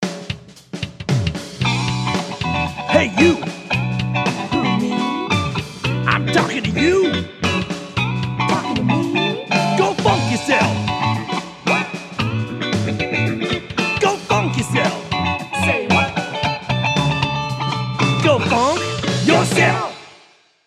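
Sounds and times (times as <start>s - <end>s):
funk music: 0.0s - 20.0s.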